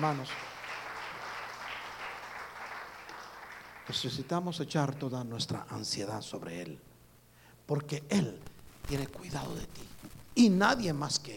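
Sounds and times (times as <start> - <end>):
speech: 0.0 - 0.5, 3.9 - 6.9, 7.7 - 11.3
audience applauding: 0.0 - 5.0.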